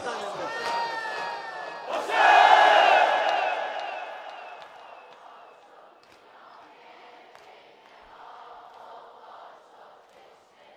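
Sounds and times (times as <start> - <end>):
large crowd screaming and shouting: 0.3 - 5.5.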